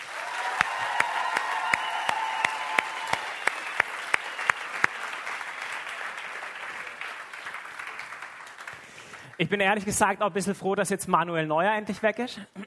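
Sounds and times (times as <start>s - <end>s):
audience applause: 0.0s - 9.4s
speech: 9.4s - 12.6s.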